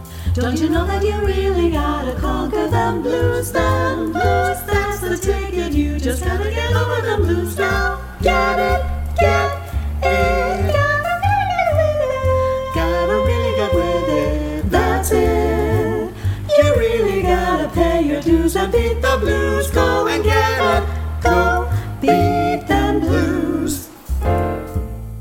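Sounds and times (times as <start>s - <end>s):
vocal blues etude without tenor: 0.1s - 24.8s.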